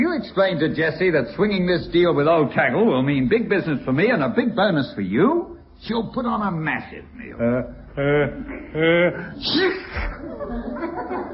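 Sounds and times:
speech: 0:00.2 - 0:11.3
laughter: 0:07.4 - 0:11.3
person sneezing: 0:08.2 - 0:10.2.

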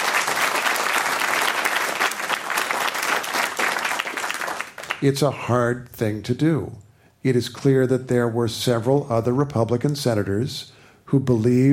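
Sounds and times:
audience applause: 0:00.0 - 0:05.0
speech: 0:05.0 - 0:11.7.

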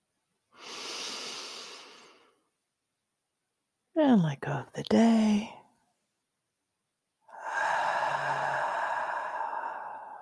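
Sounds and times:
long breath drawn in during a relaxation exercise: 0:00.6 - 0:02.4, 0:07.3 - 0:10.2
speech: 0:04.0 - 0:05.6.

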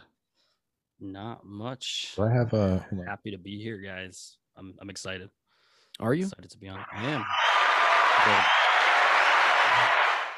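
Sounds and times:
speech: 0:01.0 - 0:05.4, 0:06.0 - 0:07.5, 0:08.2 - 0:08.7
canned applause clap track: 0:06.8 - 0:10.3.

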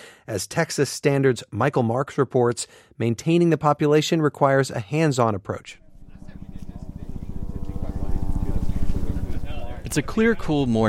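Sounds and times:
speech: 0:00.3 - 0:05.8, 0:09.9 - 0:10.8
helicopter around Elephant Mountain: 0:05.8 - 0:10.8.

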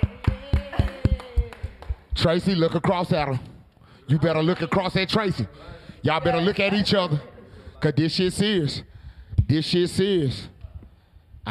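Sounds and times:
clapping: 0:00.0 - 0:02.3
speech: 0:02.2 - 0:03.5, 0:04.1 - 0:08.9, 0:09.5 - 0:10.5.

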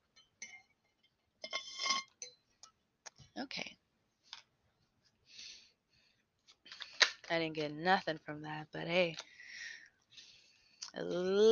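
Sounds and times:
glass clinking while getting a drink of water: 0:00.1 - 0:00.8
speech: 0:03.4 - 0:03.8, 0:07.3 - 0:09.3, 0:11.0 - 0:11.5.

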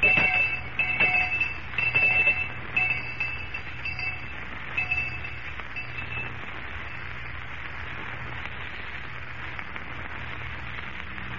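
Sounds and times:
school lunch bell ringing: 0:00.0 - 0:06.4.

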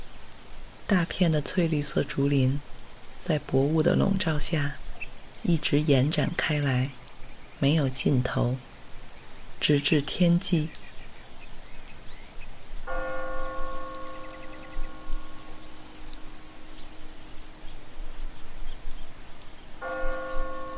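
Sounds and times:
speech: 0:00.9 - 0:04.8, 0:05.4 - 0:07.0, 0:07.6 - 0:08.7, 0:09.6 - 0:10.8
distant ethereal bell chimes: 0:12.9 - 0:16.6, 0:19.8 - 0:20.7.

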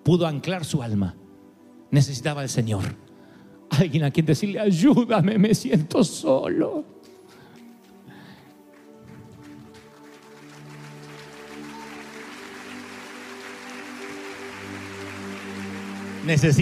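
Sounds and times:
speech: 0:00.1 - 0:01.2, 0:01.9 - 0:03.0, 0:03.7 - 0:07.0, 0:16.3 - 0:16.6
audience applause: 0:07.6 - 0:16.6.

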